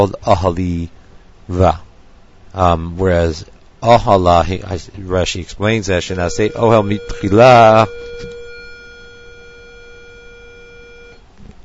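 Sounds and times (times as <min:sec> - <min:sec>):
speech: 0:00.0 - 0:01.9, 0:02.5 - 0:08.3
bell ringing: 0:06.3 - 0:11.2.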